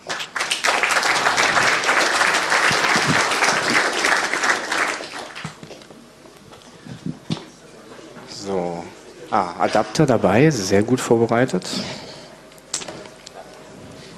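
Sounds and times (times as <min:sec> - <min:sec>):
audience applause: 0:00.0 - 0:05.6
speech: 0:09.4 - 0:12.0.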